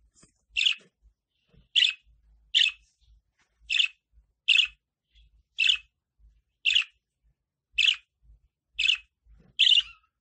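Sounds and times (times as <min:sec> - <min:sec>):
lovebird singing: 0:00.5 - 0:00.9, 0:01.6 - 0:02.8, 0:03.7 - 0:07.0, 0:07.7 - 0:10.1.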